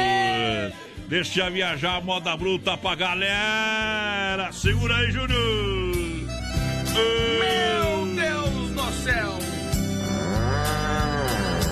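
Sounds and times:
speech: 1.1 - 5.9, 7.0 - 9.5
rhythmic percussive music beats: 4.7 - 11.6
ox mooing: 10.0 - 11.6.

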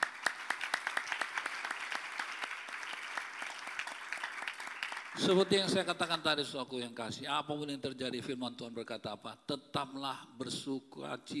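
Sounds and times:
audience applause: 0.0 - 5.6
speech: 5.2 - 11.3.

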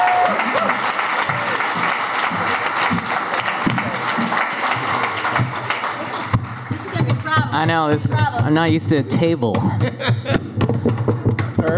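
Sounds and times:
audience applause: 0.0 - 8.0
speech: 7.6 - 9.9
laughter: 9.4 - 10.9.

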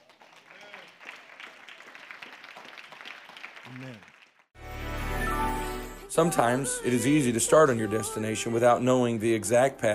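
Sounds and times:
audience hand clapping: 0.0 - 4.6
speech: 3.7 - 4.1, 6.1 - 9.9.

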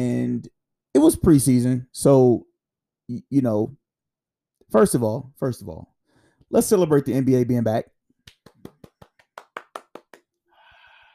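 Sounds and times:
speech: 0.0 - 2.5, 3.1 - 3.8, 4.7 - 5.9, 6.5 - 7.9
hand claps standing in for a studio audience: 8.2 - 10.4.

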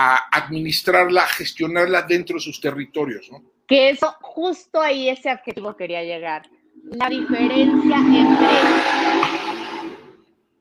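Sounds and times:
speech: 0.0 - 9.5
motorcycle passing by: 6.8 - 10.2.

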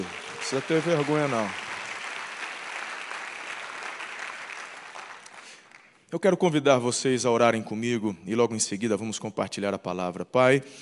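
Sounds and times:
speech: 0.0 - 1.6, 6.1 - 10.8
crowd applauding: 0.0 - 6.0.

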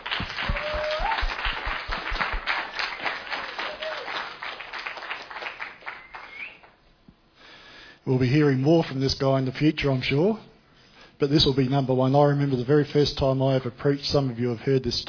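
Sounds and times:
audience applause: 0.0 - 6.8
whistles: 0.3 - 1.6, 5.8 - 6.8
speech: 8.1 - 10.5, 11.2 - 15.0.

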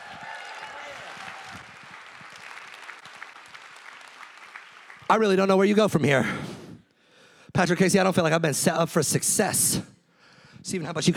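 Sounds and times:
audience applause: 0.0 - 5.1
speech: 5.1 - 6.5, 7.6 - 9.9, 10.7 - 11.1.

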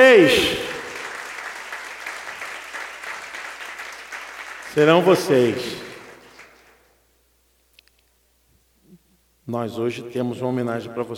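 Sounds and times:
speech: 0.0 - 0.6, 4.8 - 5.8, 9.5 - 11.1
church audience applause: 0.0 - 6.8.

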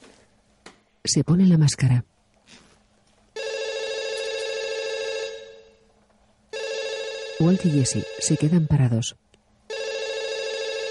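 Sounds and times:
speech: 1.0 - 2.2, 7.4 - 9.2
telephone ringing: 3.4 - 5.8, 6.5 - 9.0, 9.7 - 10.8.

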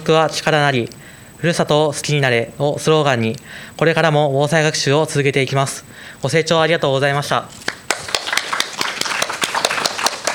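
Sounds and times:
speech: 0.0 - 7.6
audience applause: 7.7 - 10.3.

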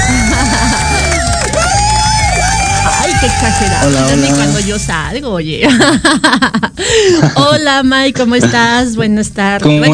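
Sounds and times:
laughter: 0.0 - 1.8, 5.6 - 7.8
audience applause: 0.0 - 4.8
speech: 3.2 - 9.9.

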